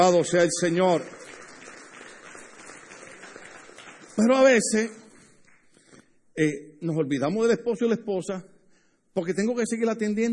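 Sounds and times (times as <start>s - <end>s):
speech: 0.0s - 1.2s, 4.2s - 5.0s, 6.4s - 8.5s, 9.2s - 10.3s
audience applauding: 0.0s - 4.8s.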